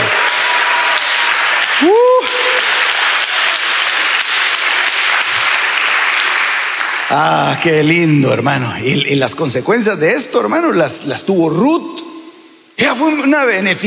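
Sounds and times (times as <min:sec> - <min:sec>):
loud applause from a large crowd: 0:00.0 - 0:07.9
person shouting: 0:01.8 - 0:02.6
speech: 0:07.1 - 0:12.1, 0:12.8 - 0:13.8.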